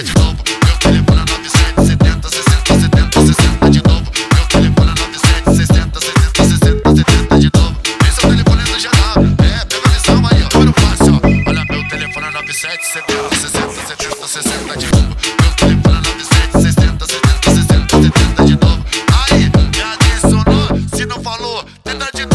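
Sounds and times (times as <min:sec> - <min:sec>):
pounding dance beat: 0:00.0 - 0:21.2
telephone ringtone melody: 0:11.1 - 0:14.0
held electronic tone: 0:11.2 - 0:13.6.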